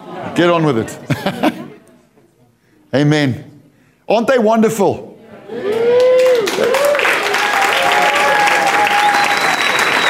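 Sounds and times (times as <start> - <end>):
laughter: 0.0 - 2.1
speech: 0.1 - 1.5, 2.9 - 3.5, 4.1 - 5.8
voices calling out and cheering: 5.5 - 10.0
audience clapping for the children at a child dedication: 5.6 - 10.0.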